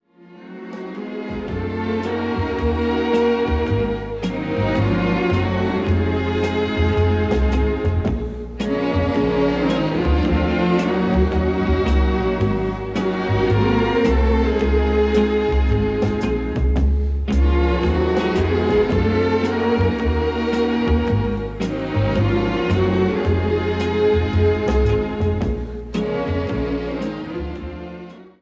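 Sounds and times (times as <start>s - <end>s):
orchestra: 0.1s - 28.4s
choir: 0.3s - 28.4s.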